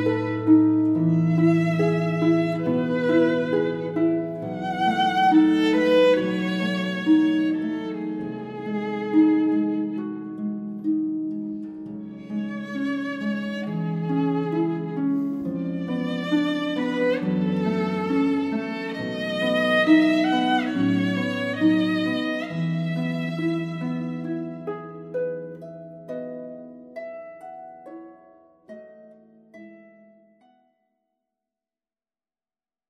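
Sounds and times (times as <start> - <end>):
violin: 0.0 - 25.9
harp: 0.0 - 30.9.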